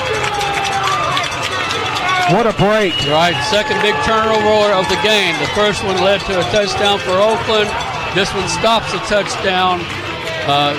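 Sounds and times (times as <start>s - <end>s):
crowd erupting in cheers: 0.0s - 10.7s
speech: 2.3s - 10.7s.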